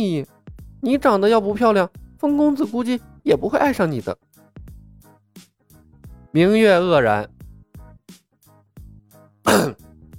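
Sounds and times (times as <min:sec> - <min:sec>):
speech: 0:00.0 - 0:04.3, 0:06.3 - 0:07.4, 0:09.5 - 0:09.8
cough from outside the carriage: 0:09.4 - 0:09.8.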